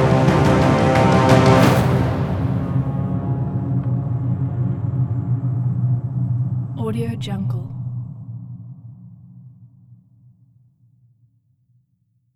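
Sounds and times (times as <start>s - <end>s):
dark Nordic trailer music: 0.0s - 8.3s.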